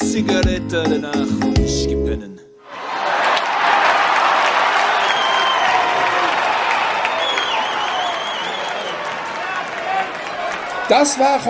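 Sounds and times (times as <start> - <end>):
speech: 0.2 - 2.4, 10.9 - 11.4
whistles and cheers: 2.7 - 10.9
audience applause after a song: 2.7 - 11.4.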